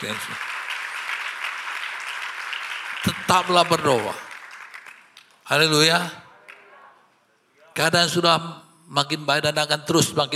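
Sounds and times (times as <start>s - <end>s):
speech: 0.0s - 0.6s, 3.0s - 4.3s, 5.5s - 6.2s, 7.8s - 10.3s
audience applause: 0.0s - 5.4s.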